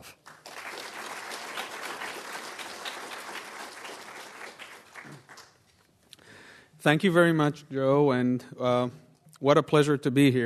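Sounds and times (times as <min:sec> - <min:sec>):
audience applause welcoming a speaker at a Commonwealth Club event: 0:00.0 - 0:05.6
speech: 0:06.8 - 0:10.4.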